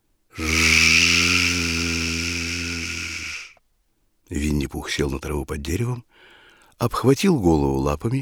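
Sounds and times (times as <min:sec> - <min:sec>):
voice imitating loud buzzing: 0:00.3 - 0:03.6
speech: 0:04.3 - 0:08.1.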